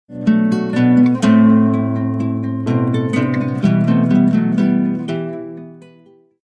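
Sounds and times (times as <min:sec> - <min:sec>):
romantic beautiful SMS melody: 0:00.1 - 0:06.2.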